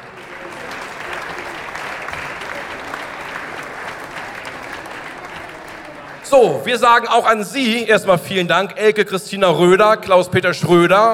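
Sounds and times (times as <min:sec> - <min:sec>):
audience applause: 0:00.0 - 0:07.2
speech: 0:06.3 - 0:11.1.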